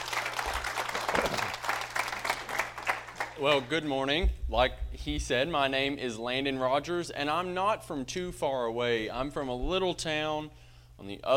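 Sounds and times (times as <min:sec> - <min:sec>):
audience applause: 0:00.0 - 0:03.7
speech: 0:03.4 - 0:11.3.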